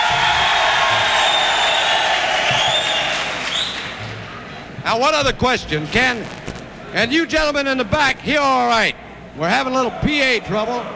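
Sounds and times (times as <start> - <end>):
1,000 Folsom prison inmates cheering and clapping: 0.0 - 4.0
speech: 4.9 - 10.9.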